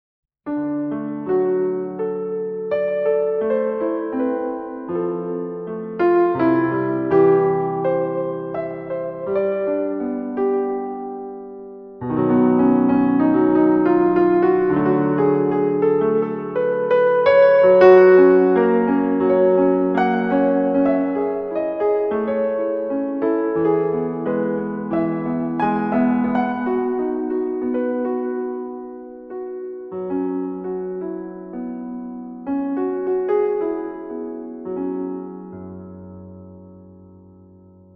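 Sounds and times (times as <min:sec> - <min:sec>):
piano piece: 0:00.5 - 0:37.9.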